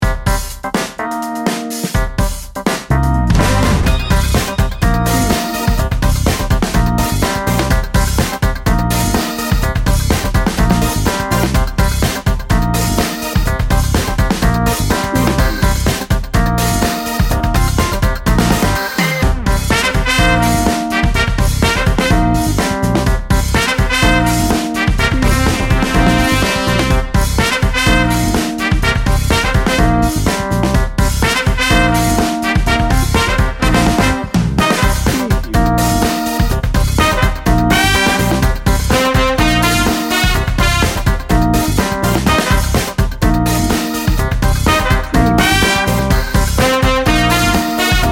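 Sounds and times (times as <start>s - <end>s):
funk music: 0.0s - 48.0s.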